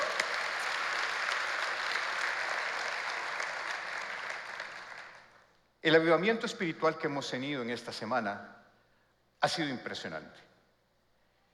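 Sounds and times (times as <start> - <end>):
audience applause: 0.0 - 5.4
speech: 5.8 - 8.6, 9.4 - 10.5.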